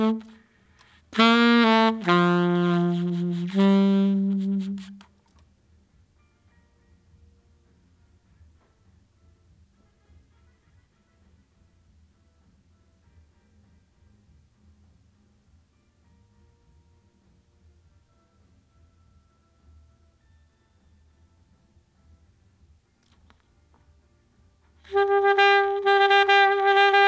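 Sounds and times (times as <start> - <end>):
saxophone: 0.0 - 5.2, 24.9 - 27.0.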